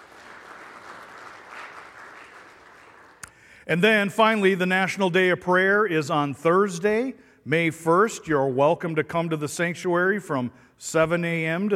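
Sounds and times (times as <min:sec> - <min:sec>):
audience applause: 0:00.0 - 0:03.2
speech: 0:03.7 - 0:11.7.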